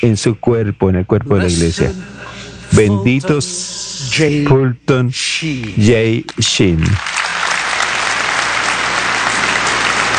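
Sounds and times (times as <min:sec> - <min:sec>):
speech: 0:00.0 - 0:07.3
audience applause: 0:06.4 - 0:10.1.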